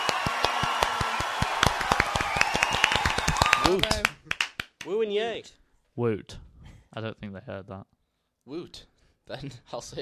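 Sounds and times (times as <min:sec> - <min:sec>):
applause: 0:00.0 - 0:05.0
speech: 0:03.7 - 0:04.1, 0:04.9 - 0:10.0.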